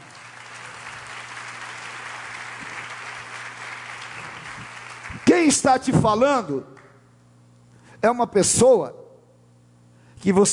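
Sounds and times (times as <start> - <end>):
audience applause: 0.0 - 5.6
speech: 5.4 - 6.7, 8.0 - 9.0, 10.2 - 10.5.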